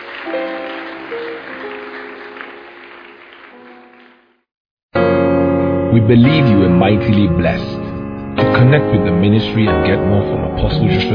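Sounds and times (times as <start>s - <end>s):
tonal musical backing: 0.0s - 4.4s, 5.0s - 11.1s
audience clapping: 0.0s - 4.5s
speech: 5.9s - 7.7s, 8.6s - 11.1s.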